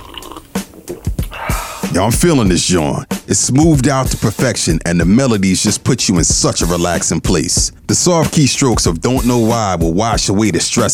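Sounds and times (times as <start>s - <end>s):
person sipping chai: 0.0s - 1.9s
speech: 2.0s - 10.9s.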